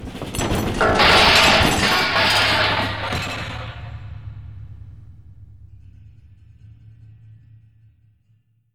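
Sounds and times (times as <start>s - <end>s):
wood metal and glass falling: 0.3s - 3.9s.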